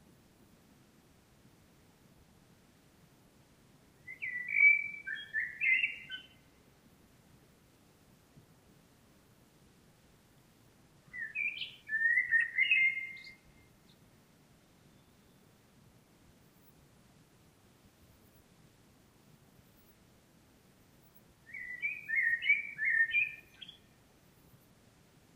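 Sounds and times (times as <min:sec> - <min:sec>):
common blackbird singing: 0:04.0 - 0:06.4, 0:11.1 - 0:13.7, 0:21.5 - 0:23.9.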